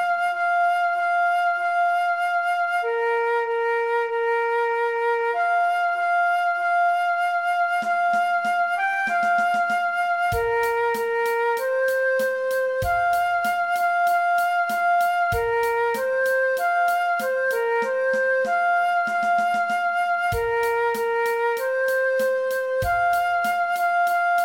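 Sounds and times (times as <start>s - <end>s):
transverse flute playing an alternate play-along track: 0.0s - 24.4s.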